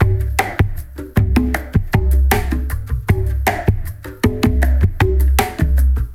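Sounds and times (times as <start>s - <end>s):
remix: 0.0s - 6.1s.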